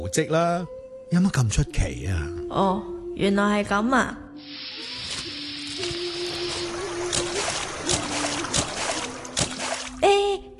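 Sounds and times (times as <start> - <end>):
speech: 0.0 - 4.7
footsteps splashing through a stream: 5.8 - 10.0.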